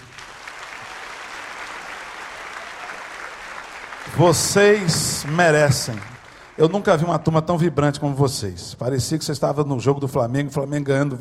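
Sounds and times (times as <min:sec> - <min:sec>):
audience applause: 0:00.0 - 0:07.3
speech: 0:04.1 - 0:11.1.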